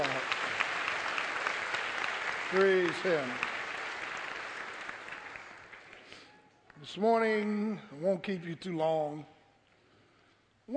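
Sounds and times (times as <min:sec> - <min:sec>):
audience hand clapping: 0:00.0 - 0:06.9
speech: 0:02.5 - 0:03.5, 0:06.8 - 0:09.3.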